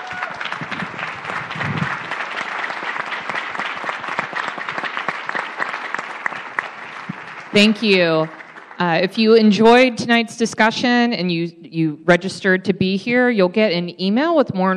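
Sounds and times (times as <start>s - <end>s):
audience applause: 0.0s - 9.1s
speech: 7.6s - 14.7s.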